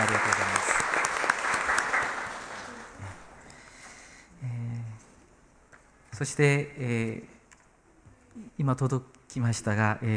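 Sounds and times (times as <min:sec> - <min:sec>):
crowd clapping warmly to welcome students: 0:00.0 - 0:03.2
speech: 0:06.2 - 0:07.3, 0:08.6 - 0:10.1.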